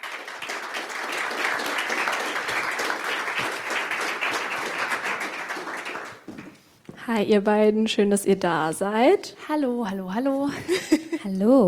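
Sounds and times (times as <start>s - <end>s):
audience applause: 0.0s - 6.6s
speech: 7.1s - 11.6s.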